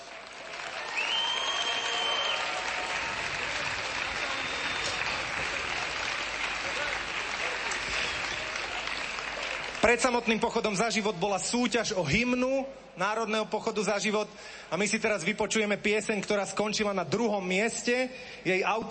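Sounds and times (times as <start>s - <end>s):
audience applause welcoming a band: 0.0s - 10.3s
speech: 9.9s - 18.8s.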